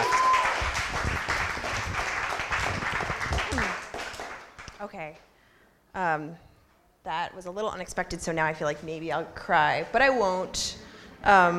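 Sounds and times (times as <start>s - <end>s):
audience applause: 0.0s - 4.8s
speech: 5.0s - 5.3s, 6.0s - 11.5s.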